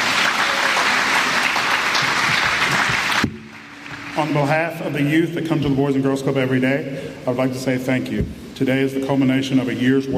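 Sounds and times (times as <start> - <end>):
crowd applauding: 0.0 - 4.5
speech: 4.2 - 10.1.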